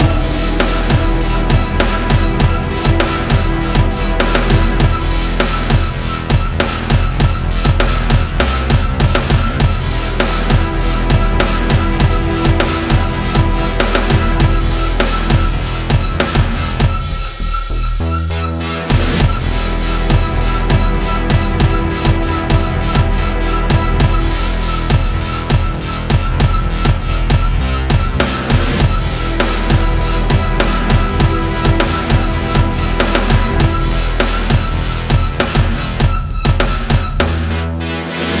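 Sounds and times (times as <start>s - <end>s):
fight music loop: 0.0s - 38.3s.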